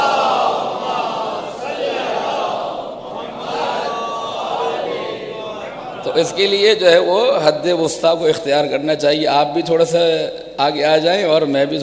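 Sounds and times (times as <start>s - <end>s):
audience chanting salawat in unison: 0.0s - 6.7s
speech: 6.2s - 11.8s.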